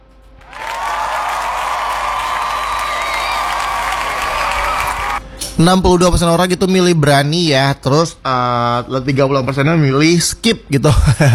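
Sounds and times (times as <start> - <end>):
dense applause: 0.4 - 5.2
faint cheering: 0.4 - 5.2
speech: 5.6 - 11.3
laughter: 10.8 - 11.3.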